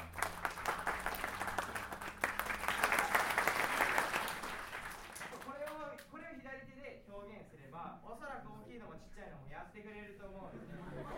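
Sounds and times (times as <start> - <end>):
audience clapping: 0.0 - 6.1
laughter: 10.5 - 11.1.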